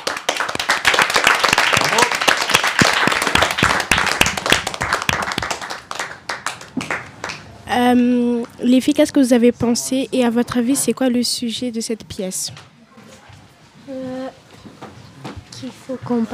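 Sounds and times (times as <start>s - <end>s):
audience applause: 0.0s - 7.5s
speech: 7.7s - 12.7s, 15.6s - 16.3s.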